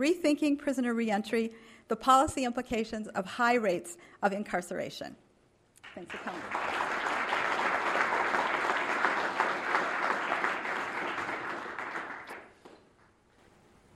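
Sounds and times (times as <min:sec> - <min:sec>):
speech: 0:00.0 - 0:05.2, 0:06.0 - 0:06.9
audience applause welcoming a speaker at a talk: 0:05.9 - 0:12.6.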